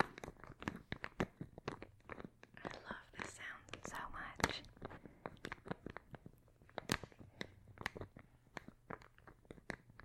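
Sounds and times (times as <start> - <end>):
soft crinkling from an ASMR video: 0.0 - 10.0
faint whispering: 2.6 - 4.9.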